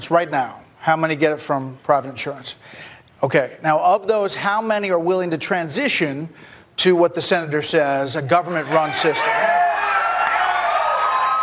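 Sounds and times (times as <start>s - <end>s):
speech: 0.0s - 9.6s
audience applause: 8.7s - 11.4s.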